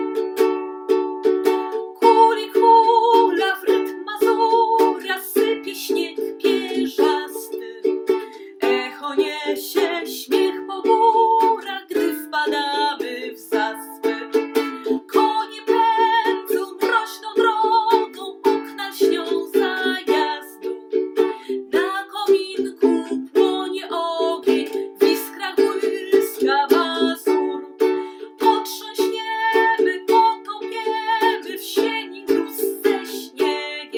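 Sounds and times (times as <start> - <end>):
person singing a mazurka in D major: 0.1 - 33.9.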